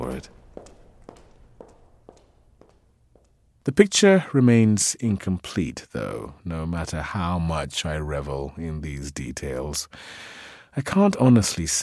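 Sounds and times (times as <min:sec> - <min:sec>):
woman's footsteps: 0:00.0 - 0:03.7
speech: 0:00.1 - 0:00.4, 0:03.7 - 0:11.8.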